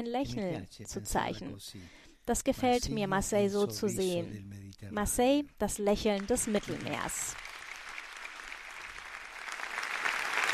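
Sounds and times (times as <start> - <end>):
speech: 0.0 - 7.5
spontaneous audience applause: 6.2 - 10.5.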